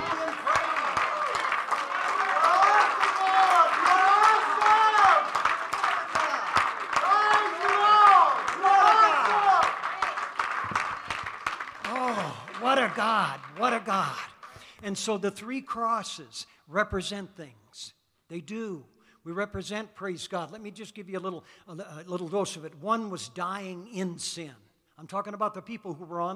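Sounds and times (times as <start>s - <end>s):
voices calling out and cheering: 0.0s - 14.4s
audience clapping hands: 0.0s - 14.8s
speech: 13.2s - 26.3s.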